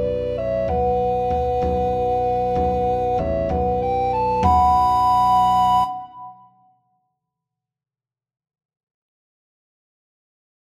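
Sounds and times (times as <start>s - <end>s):
Peruvian song: 0.0s - 6.4s.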